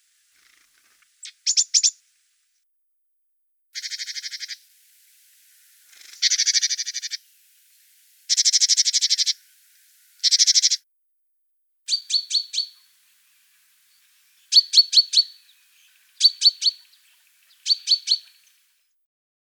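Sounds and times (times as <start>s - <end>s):
great tit calling: 1.2s - 2.0s, 3.8s - 10.8s, 11.9s - 18.7s.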